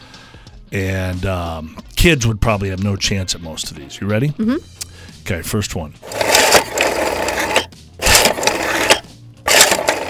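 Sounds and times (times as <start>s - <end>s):
speech: 0.7s - 6.2s
rotary dial telephone being dialed: 6.0s - 10.0s.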